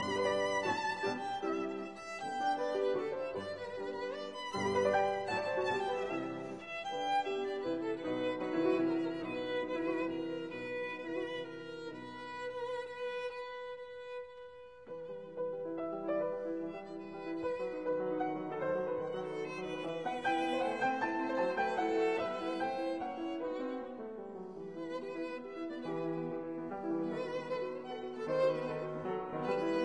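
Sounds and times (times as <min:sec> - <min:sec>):
violin sonatina in G major allegro: 0:00.0 - 0:29.8.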